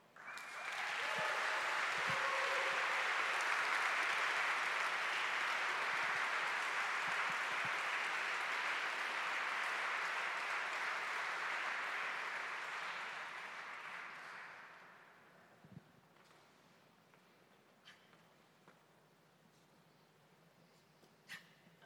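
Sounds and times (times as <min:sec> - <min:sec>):
audience applause welcoming a speaker: 0:00.2 - 0:15.1.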